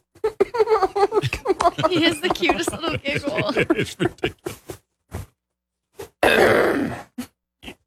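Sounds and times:
laughter: 0.4s - 4.7s
speech: 1.8s - 4.4s
big harsh throat clear: 6.2s - 7.8s.

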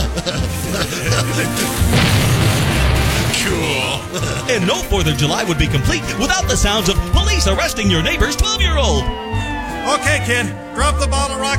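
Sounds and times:
laughter: 0.0s - 2.0s, 3.8s - 5.3s
staged sound effect of teenagers blowing up a garbage can: 1.8s - 4.1s
speech: 4.5s - 11.5s.

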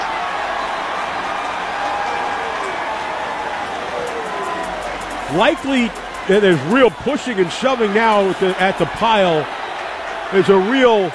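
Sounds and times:
stadium crowd cheering: 0.0s - 11.1s
speech: 5.3s - 9.6s, 10.3s - 11.1s.

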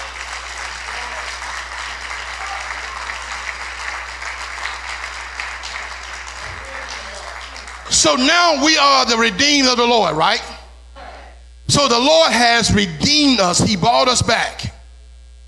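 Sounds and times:
audience clapping hands: 0.0s - 8.8s
speech: 8.0s - 10.5s, 11.8s - 14.7s.

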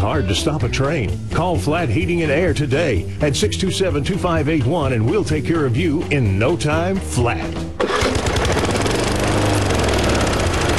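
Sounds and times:
speech: 0.1s - 7.8s
old lawn mower engine running: 7.8s - 10.7s.

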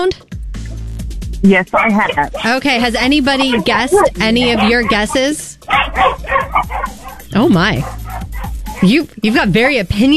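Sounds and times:
speech: 0.0s - 0.4s, 1.4s - 8.0s, 8.8s - 10.1s
dogs barking: 1.6s - 9.3s.

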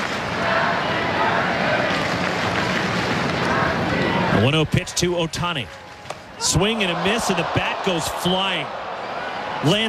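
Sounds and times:
stadium crowd chanting a birthday song: 0.2s - 2.2s, 3.1s - 4.7s
speech: 4.4s - 5.8s, 6.4s - 8.8s, 9.6s - 9.8s.

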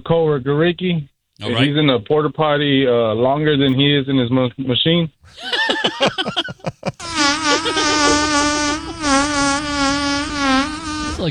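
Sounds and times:
speech: 0.0s - 6.9s
laughter: 5.3s - 9.5s
fart: 7.0s - 11.2s.

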